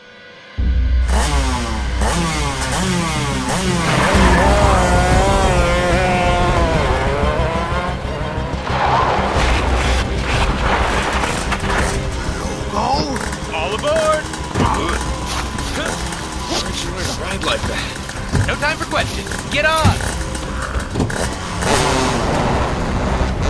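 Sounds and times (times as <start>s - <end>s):
sand sled engine revving: 0.6s - 23.4s
sand sled scraping and skidding: 1.1s - 23.4s
speech: 18.5s - 20.1s.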